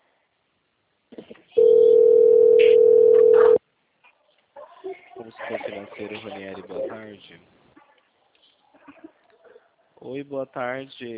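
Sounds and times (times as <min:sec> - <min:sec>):
telephone ringing: 0:01.6 - 0:03.6
speech: 0:05.8 - 0:07.6, 0:10.0 - 0:11.1.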